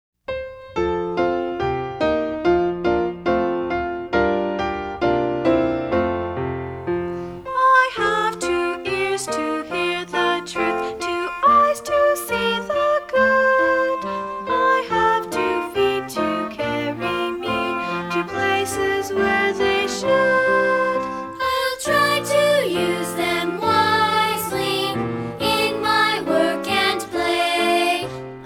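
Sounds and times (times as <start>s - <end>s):
music: 0.2s - 28.4s.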